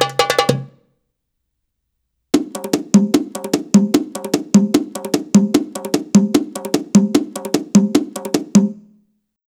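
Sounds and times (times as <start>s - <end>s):
Arabic rhythm percussion: 0.0s - 0.8s, 2.4s - 9.0s.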